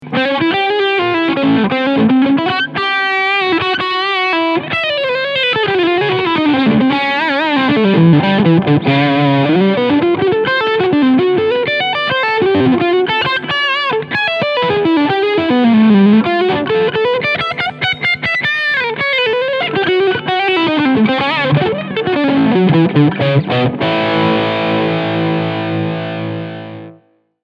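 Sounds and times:
overdriven guitar on bridge pickup: 0.0 - 27.4.

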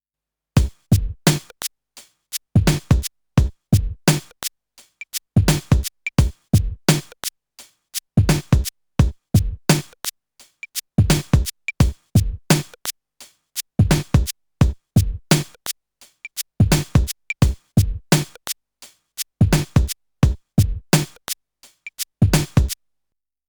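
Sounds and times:
boom bap beat: 0.6 - 1.6, 2.3 - 7.3, 8.0 - 12.9, 13.6 - 15.7, 16.3 - 18.6, 19.4 - 22.8.

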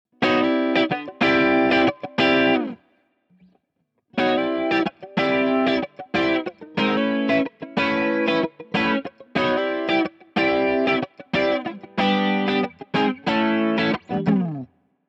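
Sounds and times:
Boss DC-2 stereo guitar effect: 0.2 - 3.5, 4.1 - 14.8.

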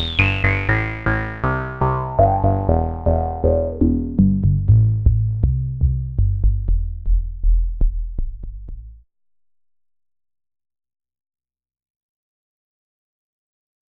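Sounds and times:
bass: 0.0 - 9.1.

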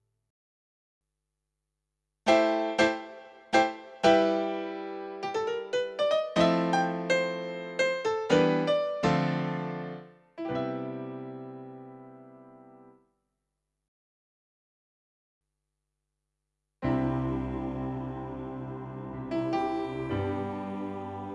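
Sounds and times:
MX49 piano: 2.3 - 13.0, 16.8 - 21.3.

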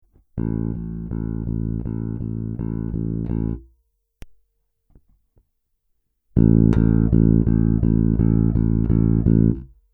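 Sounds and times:
Cort B4 Plus bass guitar in passive and active mode: 0.4 - 3.7, 6.4 - 9.8.

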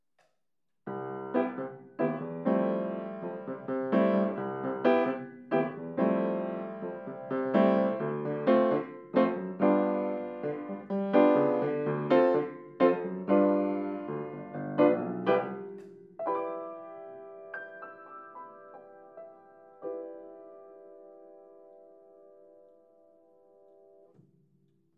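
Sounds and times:
piano: 0.9 - 24.2.

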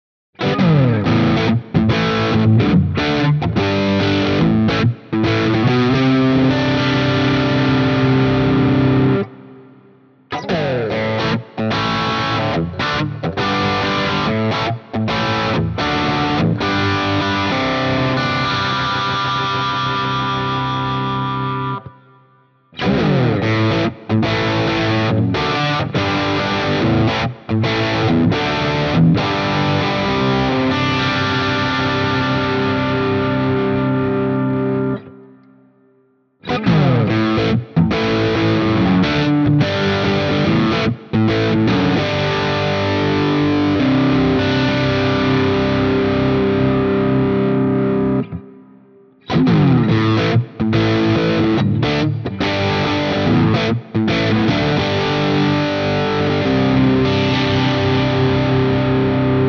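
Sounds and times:
Guild guitar crunch rhythm in all pickup positions: 0.4 - 59.4.

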